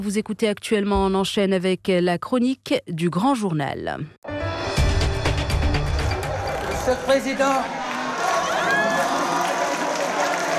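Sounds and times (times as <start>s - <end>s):
speech: 0.0s - 4.6s, 6.9s - 7.8s
hall audience cheering and acclaiming Ousmane Sonko: 5.5s - 10.5s.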